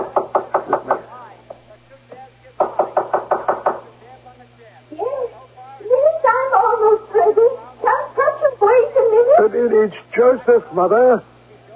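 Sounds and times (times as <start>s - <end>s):
knocking on a bedroom door: 0.0s - 1.1s, 2.6s - 3.9s
faint murmuring voices: 0.0s - 11.7s
speech: 10.4s - 11.3s.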